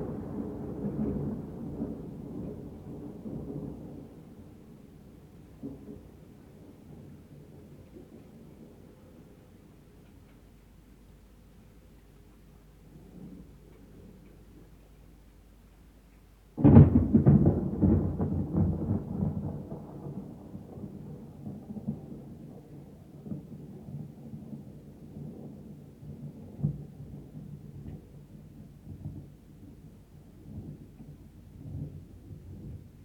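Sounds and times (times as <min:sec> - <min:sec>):
distant thunder: 0:00.0 - 0:09.4, 0:16.6 - 0:33.0.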